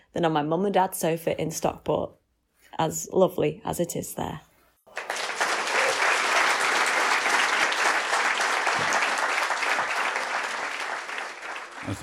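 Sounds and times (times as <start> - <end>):
speech: 0.2 - 4.5, 11.9 - 12.0
applause sound effect: 4.9 - 12.0.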